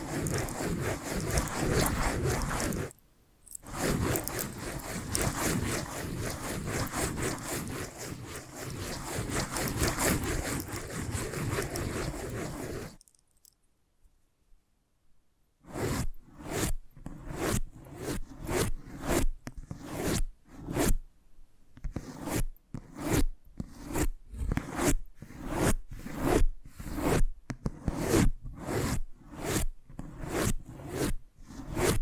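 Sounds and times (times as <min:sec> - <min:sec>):
scratching and tracing: 0:00.0 - 0:13.1, 0:15.7 - 0:20.9, 0:21.9 - 0:32.0.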